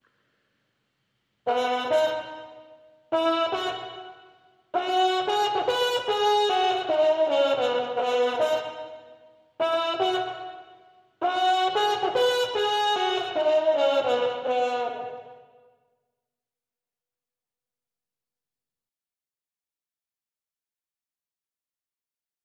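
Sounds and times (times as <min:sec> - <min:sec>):
trumpets: 0:01.5 - 0:15.7.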